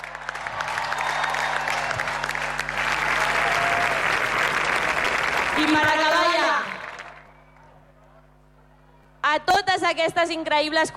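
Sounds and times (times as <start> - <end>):
audience applause: 0.0 - 7.8
speech: 9.9 - 10.9.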